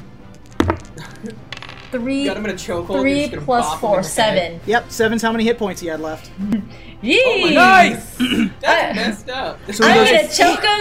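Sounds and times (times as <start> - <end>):
dice clattering on a hard surface: 0.3 - 2.2
speech: 1.2 - 10.7.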